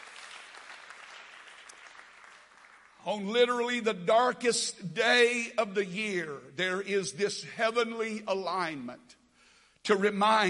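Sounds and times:
crowd clapping: 0.0s - 3.1s
speech: 3.0s - 9.2s, 9.9s - 10.4s.

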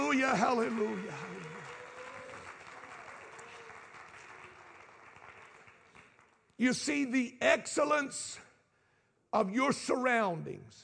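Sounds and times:
crowd clapping: 0.0s - 6.7s
speech: 0.1s - 1.4s, 6.6s - 8.4s, 9.3s - 10.8s.

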